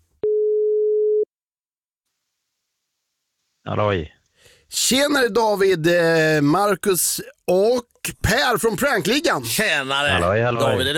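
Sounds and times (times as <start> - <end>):
phone line tone after dialing a number: 0.2 - 1.3
speech: 3.7 - 10.9.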